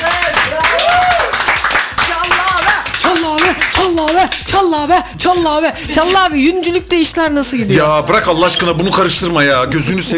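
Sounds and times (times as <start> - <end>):
audience applause: 0.0 - 4.2
speech: 4.2 - 10.1.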